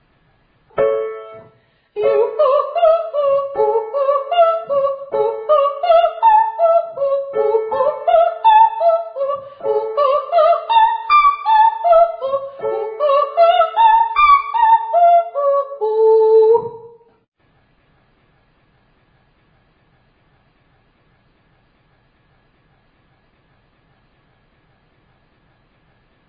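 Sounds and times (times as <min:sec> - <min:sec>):
person singing ascending triads and octaves to high D: 0:02.0 - 0:17.0.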